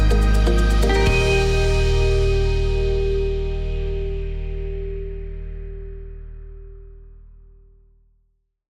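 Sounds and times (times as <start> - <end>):
uplifting corporate music: 0.0 - 5.7.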